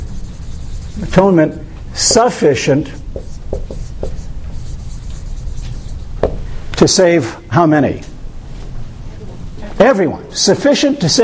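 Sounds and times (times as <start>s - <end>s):
marker or chalk writing on a board during a lecture: 0.0s - 1.2s, 3.0s - 6.4s
speech: 1.0s - 3.0s, 6.8s - 8.1s, 9.8s - 11.2s.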